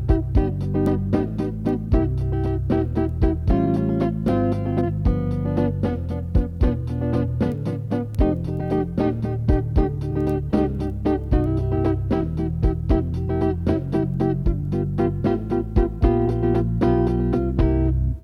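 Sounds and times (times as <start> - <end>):
slow blues music in C: 0.0 - 18.2.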